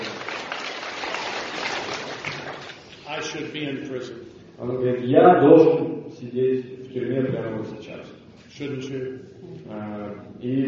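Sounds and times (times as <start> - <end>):
audience applause: 0.0 - 2.8
speech: 3.2 - 10.6.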